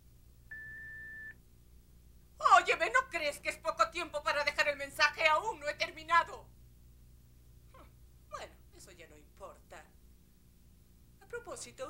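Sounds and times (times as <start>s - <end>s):
faint hiss: 0.0s - 11.8s
answering machine beep in an animated series: 0.5s - 1.3s
speech: 2.8s - 6.5s, 11.3s - 11.8s.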